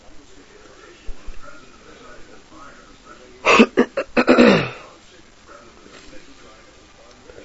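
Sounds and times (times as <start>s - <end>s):
man sneezing with a cold: 3.5s - 4.8s.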